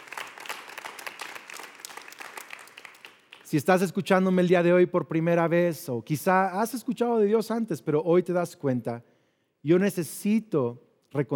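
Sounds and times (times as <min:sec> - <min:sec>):
crowd applauding: 0:00.0 - 0:03.7
speech: 0:03.5 - 0:11.3.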